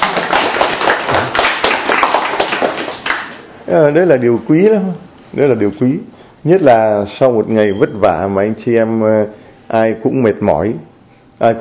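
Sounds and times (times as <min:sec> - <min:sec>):
audience applauding: 0:00.0 - 0:03.5
speech: 0:03.7 - 0:11.5.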